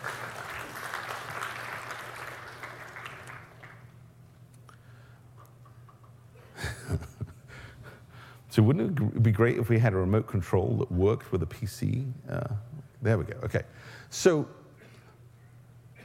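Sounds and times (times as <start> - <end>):
crowd clapping: 0.0 - 4.0
low steady hum: 0.0 - 16.0
speech: 8.6 - 14.6.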